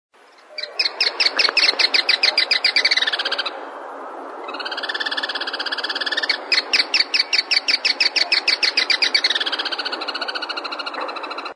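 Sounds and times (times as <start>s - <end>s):
ochraceous curutié bird calling: 0.3s - 3.7s, 4.4s - 11.5s.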